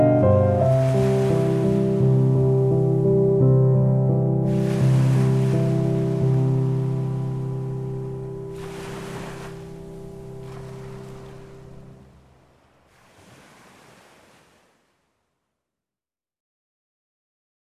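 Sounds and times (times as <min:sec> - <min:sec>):
piano: 0:00.0 - 0:12.2
seaside waves: 0:00.6 - 0:03.3, 0:04.4 - 0:15.3.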